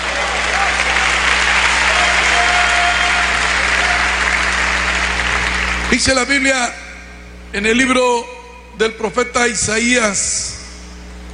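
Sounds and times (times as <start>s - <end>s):
audience applause: 0.0s - 5.9s
speech: 5.9s - 6.8s, 7.5s - 10.6s.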